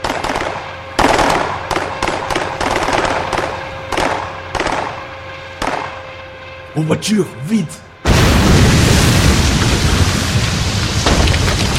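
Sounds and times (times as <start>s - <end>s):
gunfire: 0.0s - 4.9s
low hum: 0.0s - 11.7s
speech: 6.8s - 7.9s.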